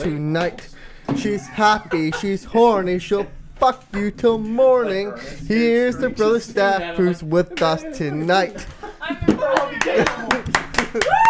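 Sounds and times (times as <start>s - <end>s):
speech: 0.0s - 10.2s, 10.9s - 11.2s
people talking loudly and calling out: 0.0s - 10.5s
laughter: 1.2s - 11.2s
hands clapping among a lively group: 9.2s - 11.2s.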